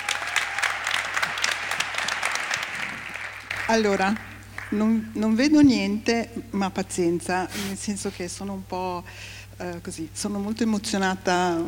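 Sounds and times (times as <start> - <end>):
audience applause: 0.0 - 4.8
speech: 3.7 - 11.6.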